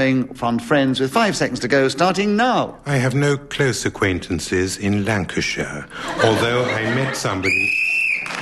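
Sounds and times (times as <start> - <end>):
speech: 0.0 - 7.8
laughter: 6.0 - 7.7
whistle ending a round: 7.4 - 8.3.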